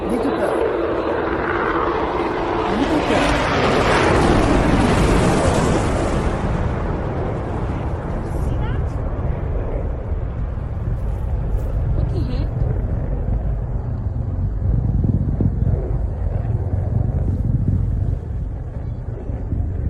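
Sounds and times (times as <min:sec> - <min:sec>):
F-35 fighter jet flying: 0:00.0 - 0:19.8
explosion: 0:01.4 - 0:18.7.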